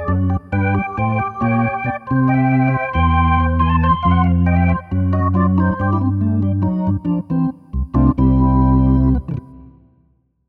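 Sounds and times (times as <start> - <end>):
organ: 0.0 - 9.8.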